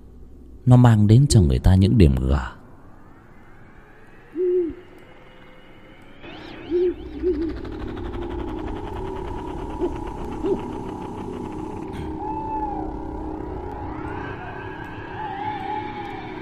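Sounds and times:
speech: 0.7s - 2.6s
owl hooting at night: 3.6s - 16.3s.

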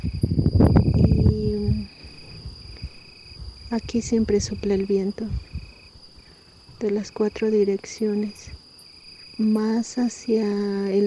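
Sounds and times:
crickets chirping: 0.0s - 11.0s
speech: 3.7s - 5.5s, 6.8s - 8.6s, 9.4s - 11.0s.

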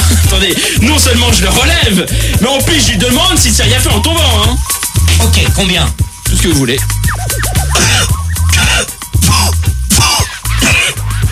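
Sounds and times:
speech: 0.4s - 7.0s
person coughing: 7.7s - 11.1s.

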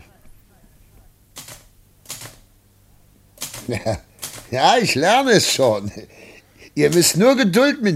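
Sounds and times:
typewriter keys being struck: 1.4s - 2.4s, 3.4s - 4.8s
speech: 3.7s - 7.9s.

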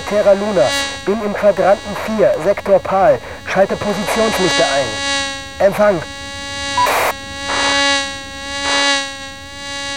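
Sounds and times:
fly buzzing in headphones: 0.0s - 9.9s
speech: 0.1s - 6.2s.

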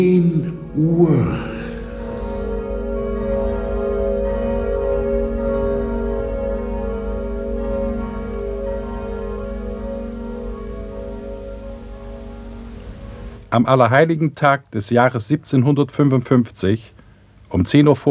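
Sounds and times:
speech: 0.0s - 1.6s, 13.5s - 18.0s
church bells ringing: 0.0s - 13.5s.

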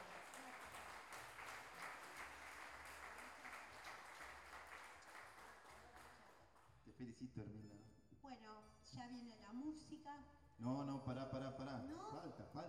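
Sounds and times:
audience applause: 0.0s - 6.4s
speech: 7.0s - 12.6s.

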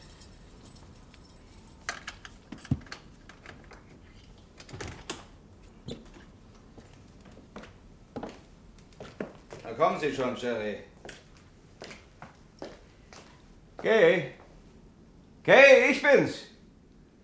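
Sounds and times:
keys jangling: 0.0s - 3.2s
speech: 9.8s - 10.9s, 13.8s - 14.4s, 15.4s - 16.4s.

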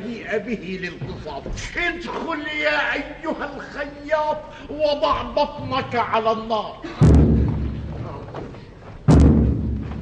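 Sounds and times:
speech: 0.3s - 7.2s
loud knocking thuds: 7.0s - 8.0s, 9.1s - 10.0s.

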